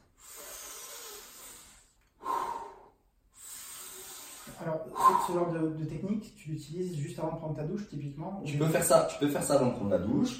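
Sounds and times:
deep belly breath in and release: 0.0s - 5.4s
speech: 4.6s - 10.3s.

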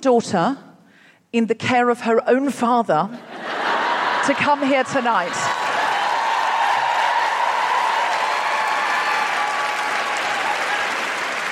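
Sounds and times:
speech: 0.0s - 0.6s, 1.3s - 3.6s, 4.2s - 5.6s
laughter: 3.2s - 5.8s
live audience applause: 4.9s - 11.5s
cheers and whoops: 5.3s - 11.5s.

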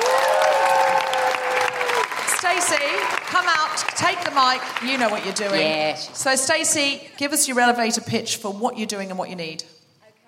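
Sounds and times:
audience applause: 0.0s - 6.2s
speech: 2.5s - 9.8s.

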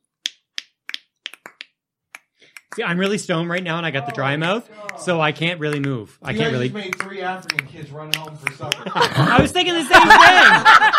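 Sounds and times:
finger snaps: 0.2s - 2.8s
speech: 2.8s - 10.9s
laughter: 8.4s - 10.9s.

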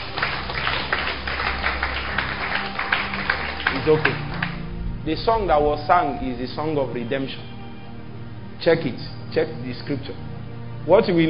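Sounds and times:
audience clapping: 0.0s - 6.0s
speech: 3.9s - 4.3s, 5.0s - 7.5s, 8.6s - 11.2s.

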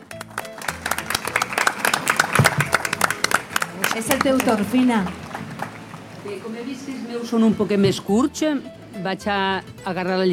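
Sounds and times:
audience applause from a sizable crowd: 0.0s - 6.2s
speech: 4.0s - 5.2s, 6.2s - 10.3s.

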